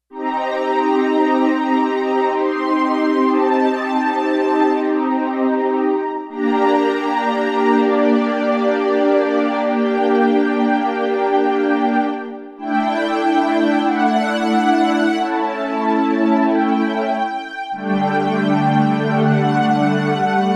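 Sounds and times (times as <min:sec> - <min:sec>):
synth strings: 0:00.1 - 0:20.5.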